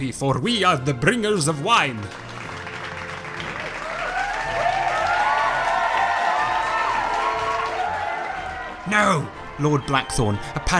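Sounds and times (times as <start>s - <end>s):
speech: 0.0s - 2.3s, 8.9s - 10.7s
uproarious cheering of guards: 3.4s - 10.1s.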